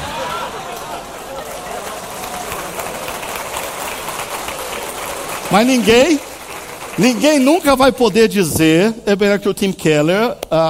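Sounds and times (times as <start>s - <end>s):
crowd applause: 0.0s - 8.3s
speech: 5.5s - 6.3s, 7.0s - 10.6s.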